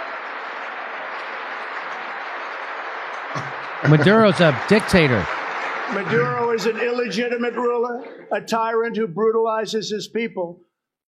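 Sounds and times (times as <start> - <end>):
audience applause after a speech: 0.0 - 7.4
speech: 3.3 - 11.0
laughter: 3.4 - 8.5.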